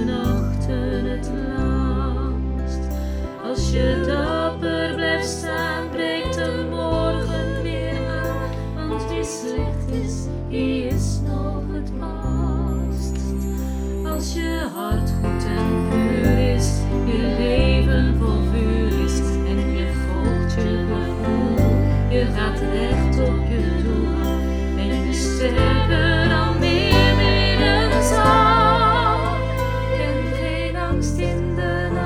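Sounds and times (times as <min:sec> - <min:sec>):
lower voice part singing: 0:00.0 - 0:13.2, 0:14.4 - 0:32.0.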